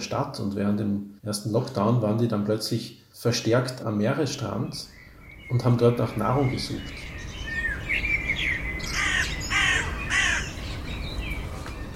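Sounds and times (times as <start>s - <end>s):
speech: 0.0s - 7.1s
thin bird chirps: 4.4s - 11.9s
crow cawing: 8.8s - 10.6s.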